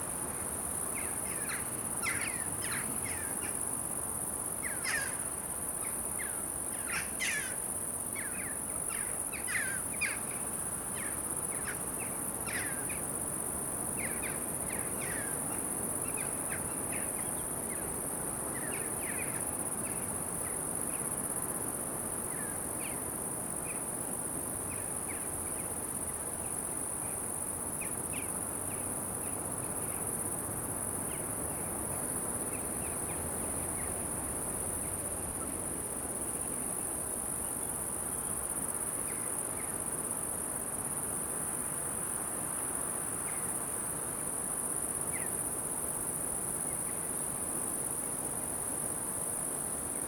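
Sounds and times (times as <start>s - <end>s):
cricket trill: 0.0s - 50.0s
wind: 0.0s - 50.0s
swift screeching calls: 4.6s - 5.3s.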